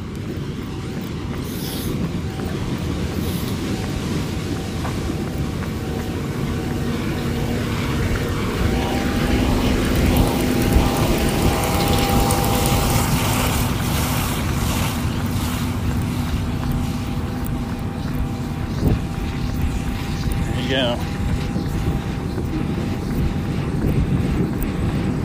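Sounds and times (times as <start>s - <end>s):
combine harvester going down a corn row: 0.0s - 25.2s.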